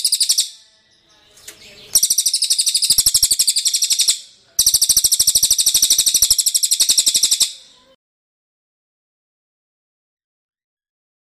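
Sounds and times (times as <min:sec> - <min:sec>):
bird song of high sharp chirps: 0:00.0 - 0:08.0.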